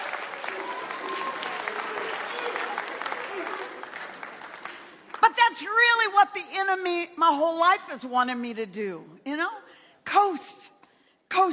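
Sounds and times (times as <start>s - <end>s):
audience applauding: 0.0s - 5.2s
speech: 5.6s - 10.6s.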